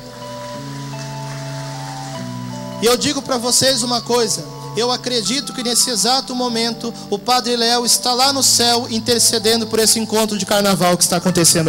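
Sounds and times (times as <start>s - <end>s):
audience applause: 0.0s - 2.5s
keyboard or organ chords: 0.0s - 11.6s
speech: 2.8s - 11.6s.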